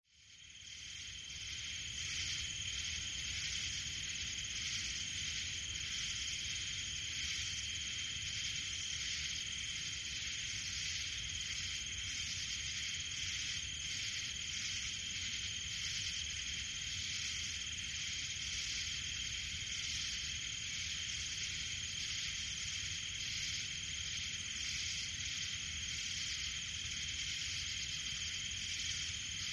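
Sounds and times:
crickets chirping in a forest: 0.1 - 29.5
forest ambience: 0.1 - 29.5.

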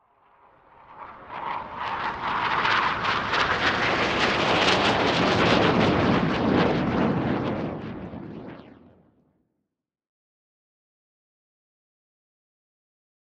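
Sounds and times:
Hawk plane flying by fast: 0.0 - 9.0.

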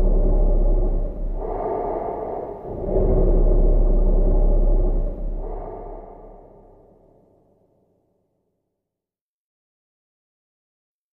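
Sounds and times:
human bassy exhale through reverb: 0.0 - 7.5.

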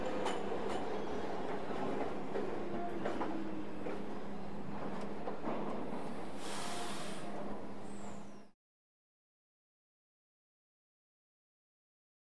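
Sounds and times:
subway train at platform: 0.0 - 8.6.

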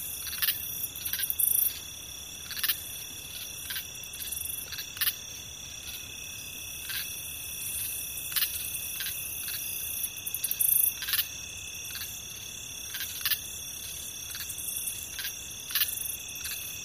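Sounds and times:
cricket singing as a shrill trill: 0.0 - 16.8.

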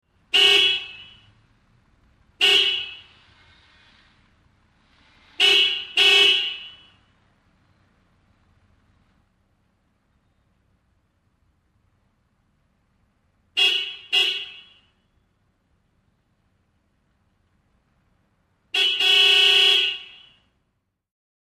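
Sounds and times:
1980 Toyota car horn: 0.2 - 1.4, 2.4 - 4.1, 5.2 - 7.2, 13.5 - 15.2, 18.7 - 20.6.

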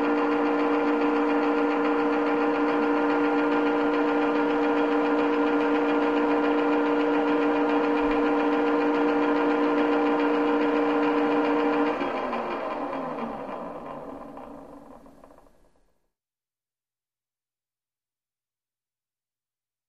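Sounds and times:
motor turning on and winding up: 0.0 - 15.7.

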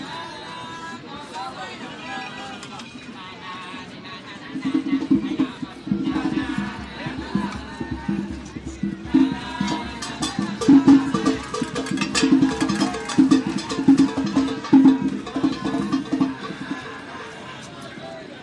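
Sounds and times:
Central Park festival drums: 4.4 - 17.5.

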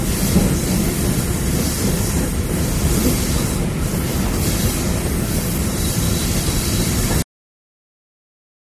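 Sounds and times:
diesel locomotive at 50 mph: 0.0 - 7.2
rails rumbling under diesel locomotive: 0.0 - 7.2.

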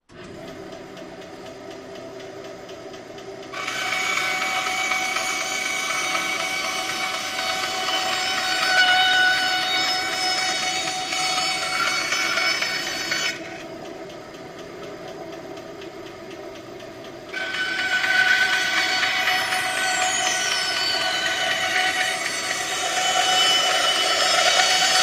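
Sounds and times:
hand saw cutting through wood back and forth: 3.6 - 13.5, 17.4 - 25.0.

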